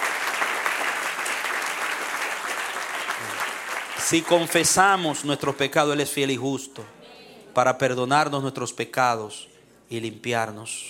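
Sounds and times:
audience applauding: 0:00.0 - 0:05.2
speech: 0:04.1 - 0:07.0, 0:07.6 - 0:10.8.

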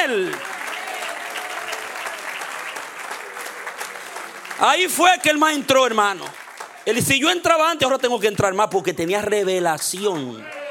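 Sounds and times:
audience applause: 0:00.0 - 0:07.7, 0:09.9 - 0:10.6
speech: 0:00.1 - 0:00.5, 0:04.6 - 0:10.6.

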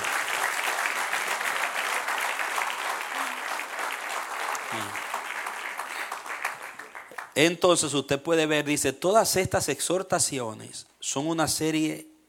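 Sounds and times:
audience applause: 0:00.0 - 0:07.4
faint low voice: 0:04.7 - 0:05.0
speech: 0:04.8 - 0:05.0, 0:07.4 - 0:12.1.

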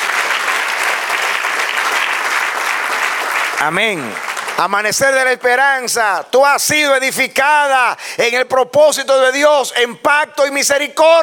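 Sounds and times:
audience applause: 0:00.0 - 0:05.4
speech: 0:03.6 - 0:11.2.

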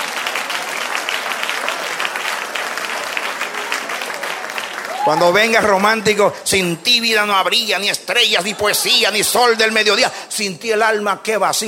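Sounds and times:
audience applause: 0:00.0 - 0:06.2
speech: 0:05.0 - 0:11.6
laughter: 0:08.1 - 0:10.2.

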